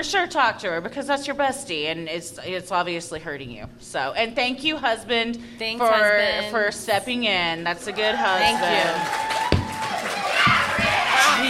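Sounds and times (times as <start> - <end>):
speech: 0.0 - 9.4
many voices shouting over one another: 7.9 - 11.4.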